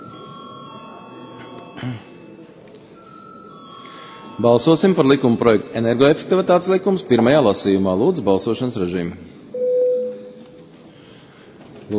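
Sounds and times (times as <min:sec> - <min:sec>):
parliament chamber bell before a vote: 0:00.0 - 0:06.2
faint murmur: 0:00.0 - 0:11.9
speech: 0:01.8 - 0:02.1, 0:04.4 - 0:09.4.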